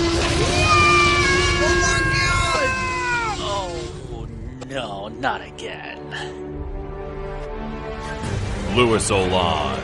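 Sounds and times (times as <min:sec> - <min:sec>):
giant dinosaur roaring: 0:00.1 - 0:04.0
speech: 0:05.2 - 0:06.5, 0:08.7 - 0:09.8.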